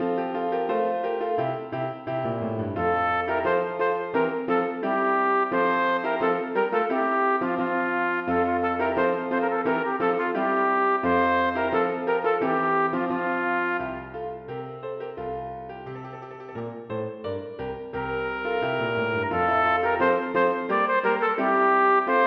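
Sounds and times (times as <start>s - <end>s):
piano: 0.0s - 22.2s
trumpet: 2.8s - 14.3s, 15.9s - 16.9s, 18.0s - 22.2s.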